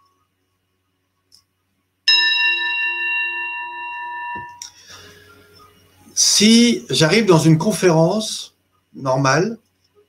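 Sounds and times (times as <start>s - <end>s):
Tibetan singing bowl struck and ringing: 2.1s - 5.6s
speech: 6.2s - 9.6s.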